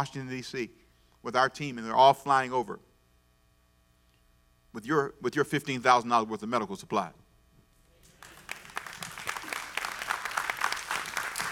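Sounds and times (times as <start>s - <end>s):
speech: 0.0s - 2.9s, 4.7s - 7.2s
audience hand clapping: 8.0s - 11.5s.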